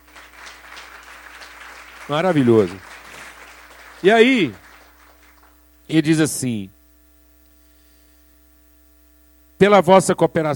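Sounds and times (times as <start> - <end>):
audience applause: 0.0 - 5.6
speech: 2.1 - 2.9, 4.0 - 4.6, 5.9 - 6.8, 9.6 - 10.5.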